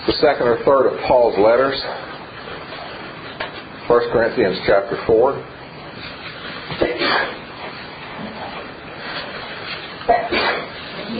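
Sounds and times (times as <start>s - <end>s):
speech: 0.1s - 2.1s, 3.9s - 6.1s
person sneezing: 6.8s - 7.4s, 10.1s - 10.8s.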